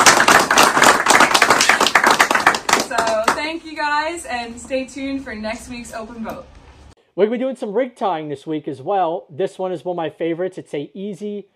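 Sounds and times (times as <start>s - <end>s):
crowd applauding: 0.0s - 3.4s
speech: 4.1s - 6.6s, 7.2s - 11.5s.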